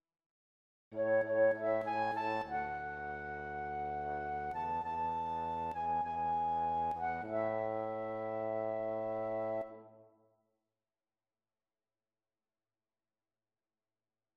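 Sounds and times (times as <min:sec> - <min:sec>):
flute: 0:01.0 - 0:09.9.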